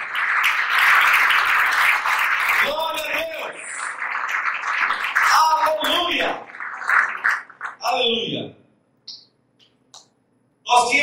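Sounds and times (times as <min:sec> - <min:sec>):
audience applauding loudly: 0:00.0 - 0:08.1.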